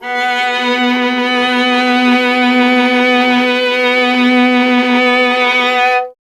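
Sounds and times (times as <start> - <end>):
viola playing B: 0.0 - 6.2.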